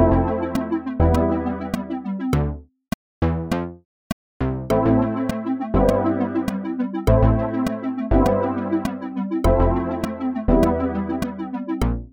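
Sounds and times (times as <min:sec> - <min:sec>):
synth pad: 0:00.0 - 0:02.2, 0:04.7 - 0:11.8.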